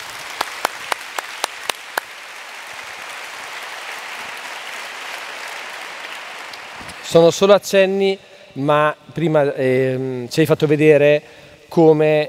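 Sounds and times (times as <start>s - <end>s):
audience applause: 0.0s - 7.2s
speech: 7.0s - 12.2s.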